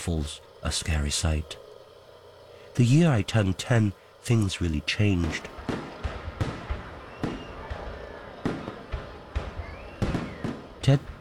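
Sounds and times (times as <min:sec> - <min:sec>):
speech: 0:00.0 - 0:01.6, 0:02.8 - 0:05.8, 0:10.9 - 0:11.1
faint crackling: 0:00.0 - 0:11.1
firecrackers popping: 0:04.9 - 0:11.1.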